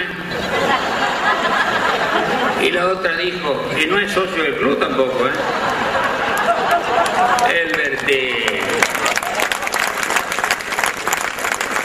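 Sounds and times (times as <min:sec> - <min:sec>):
faint murmur of crowd voices: 0:00.0 - 0:10.4
laughter: 0:00.3 - 0:02.8, 0:03.8 - 0:10.0
speech: 0:02.8 - 0:05.8, 0:06.9 - 0:09.0
audience applause: 0:05.4 - 0:11.8.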